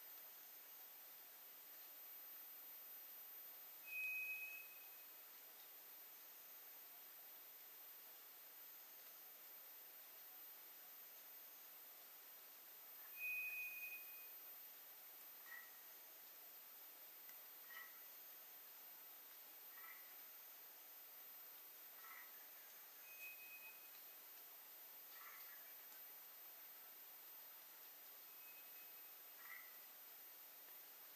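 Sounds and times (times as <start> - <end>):
hiss: 0.0 - 31.1
White's thrush thin whistle: 3.9 - 4.9.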